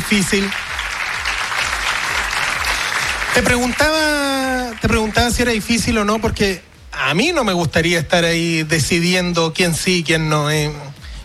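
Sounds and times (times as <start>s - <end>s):
audience applause: 0.0s - 5.8s
speech: 0.1s - 0.6s, 3.4s - 11.0s.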